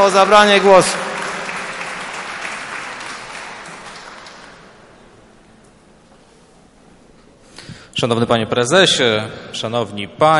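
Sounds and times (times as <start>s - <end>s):
speech: 0.0s - 1.1s, 8.0s - 10.3s
audience applause: 0.0s - 5.3s.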